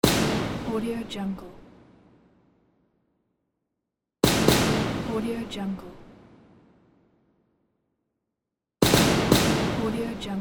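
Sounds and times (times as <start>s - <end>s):
gunshot: 0.0s - 2.7s, 4.2s - 7.2s, 8.8s - 10.4s.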